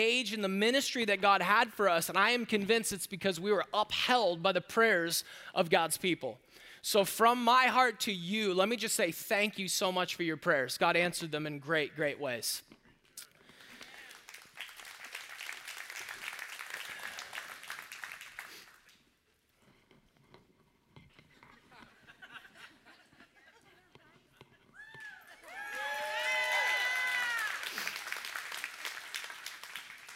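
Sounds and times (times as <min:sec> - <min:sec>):
speech: 0:00.0 - 0:12.7
audience clapping: 0:13.5 - 0:19.1, 0:24.9 - 0:30.1
whoops and cheering voices: 0:24.7 - 0:28.0.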